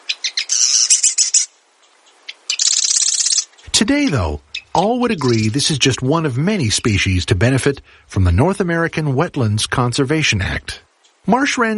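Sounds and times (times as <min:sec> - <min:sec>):
marsh wren rattling buzzy song: 0:00.0 - 0:03.8, 0:04.4 - 0:05.6
speech: 0:03.8 - 0:11.7.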